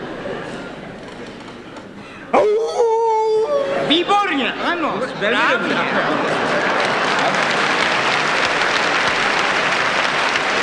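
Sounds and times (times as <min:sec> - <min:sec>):
noise: 0:00.0 - 0:10.6
speech: 0:02.3 - 0:02.7, 0:03.9 - 0:07.6
person imitating a jackal howl: 0:02.3 - 0:03.9
laughter: 0:04.7 - 0:09.4.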